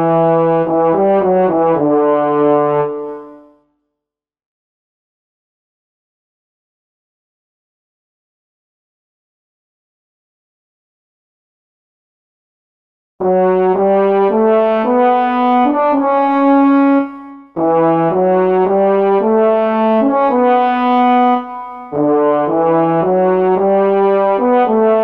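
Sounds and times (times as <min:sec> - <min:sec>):
timpani: 0:00.0 - 0:03.5, 0:13.2 - 0:25.0
trombone: 0:00.0 - 0:03.5, 0:13.2 - 0:25.0.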